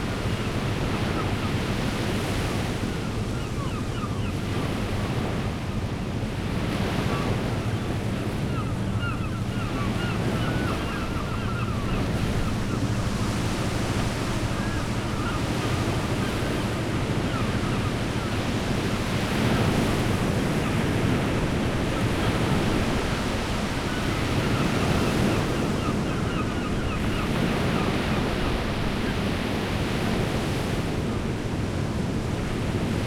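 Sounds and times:
sea ambience: 0.0 - 33.0
distant ship engine: 3.7 - 22.6.

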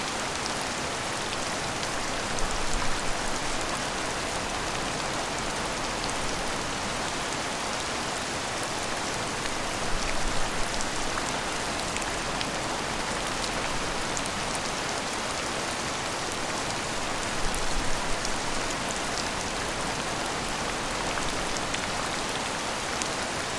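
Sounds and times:
heavy rainstorm in a city: 0.0 - 23.5.

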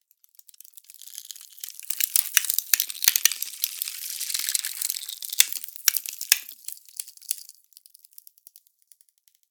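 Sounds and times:
ice cracking: 0.5 - 7.6.

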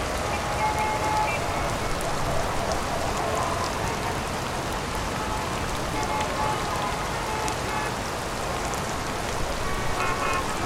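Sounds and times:
heavy rainstorm in a city: 0.0 - 10.5.

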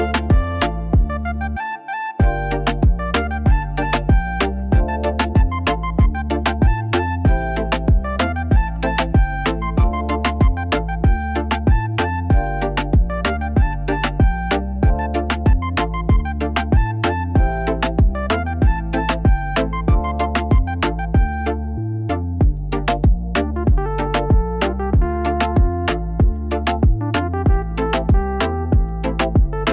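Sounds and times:
reggaeton beat: 0.0 - 29.7.

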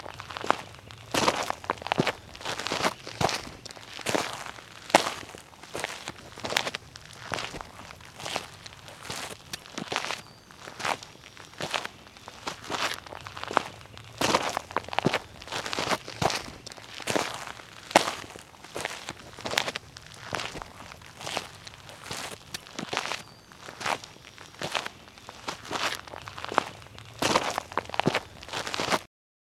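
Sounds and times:
footsteps in sneakers walking on sand with pebbles: 0.0 - 29.1.

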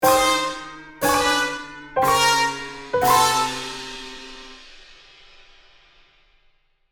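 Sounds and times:
comedy cartoon wah wah wah fail trumpets: 0.0 - 4.6.

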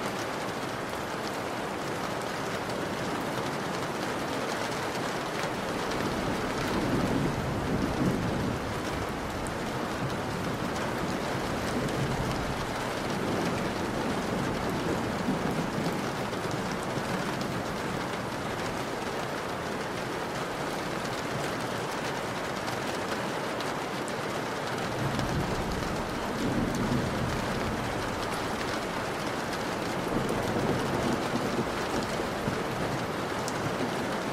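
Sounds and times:
rain on window sill: 0.0 - 34.3
distant thunder: 5.6 - 15.9, 24.9 - 33.2.

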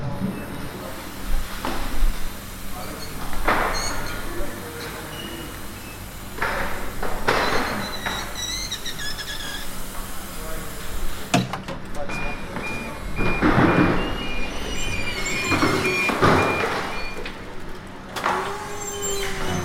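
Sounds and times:
heavy machinery at a construction site: 0.0 - 19.6.

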